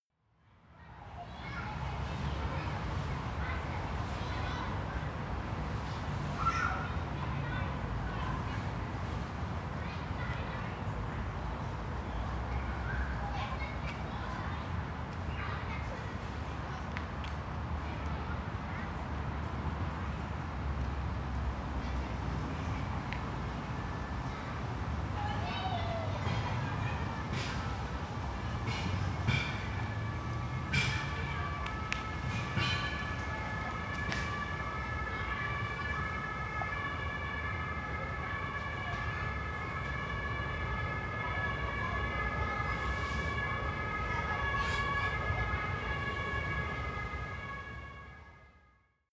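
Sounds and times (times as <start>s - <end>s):
children in a park: 0.6s - 19.8s, 21.4s - 48.4s
traffic: 0.6s - 48.6s
siren: 29.3s - 48.8s.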